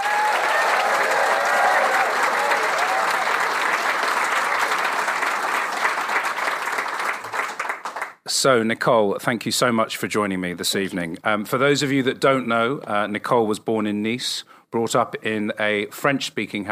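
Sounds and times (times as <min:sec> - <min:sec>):
audience at an evening event applauding to welcome a guest onstage: 0:00.0 - 0:08.2
speech: 0:08.4 - 0:16.7.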